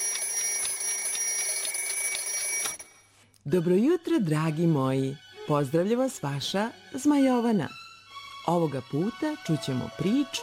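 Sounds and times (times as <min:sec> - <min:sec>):
alarm clock ringing: 0:00.0 - 0:03.1
speech: 0:03.4 - 0:07.8, 0:08.5 - 0:10.4.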